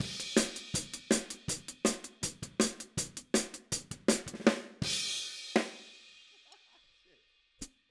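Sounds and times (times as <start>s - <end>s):
outro hi-hat drums: 0.0s - 4.4s.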